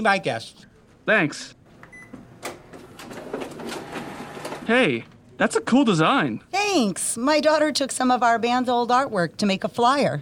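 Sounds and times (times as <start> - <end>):
speech: 0.0 - 1.6, 4.7 - 10.2
photocopier making a copy: 2.4 - 5.0.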